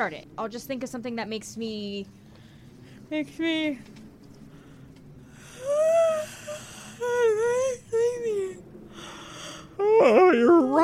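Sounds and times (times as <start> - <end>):
speech: 0.0 - 2.2, 3.1 - 4.0
several people yawning: 5.4 - 7.6, 9.0 - 10.8.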